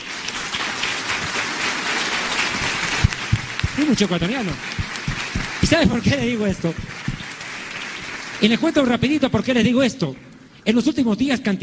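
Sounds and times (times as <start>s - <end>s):
audience applause: 0.0s - 8.9s
speech: 3.8s - 4.8s, 5.6s - 7.0s, 8.4s - 11.6s.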